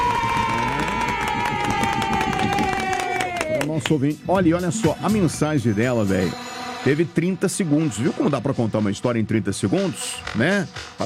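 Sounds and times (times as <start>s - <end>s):
studio audience cheering and whoops: 0.0s - 3.7s
studio audience applause: 0.0s - 3.9s
speech: 3.9s - 11.0s.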